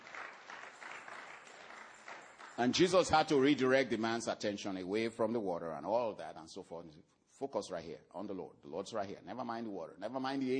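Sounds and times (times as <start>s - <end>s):
church congregation hand clapping: 0.0s - 3.4s
speech: 2.6s - 10.5s.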